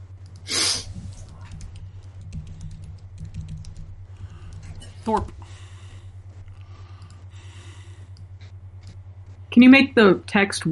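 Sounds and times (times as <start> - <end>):
low steady hum: 0.0 - 10.6
typing on a computer keyboard: 1.1 - 5.2
speech: 5.0 - 5.4, 9.6 - 10.6.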